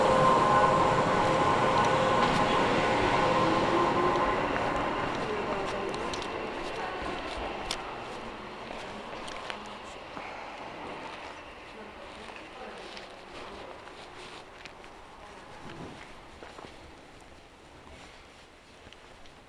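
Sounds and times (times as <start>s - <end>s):
steady high whine: 0.0s - 11.6s
Sangi Railway train rolling on the Sangi Line: 0.0s - 19.4s.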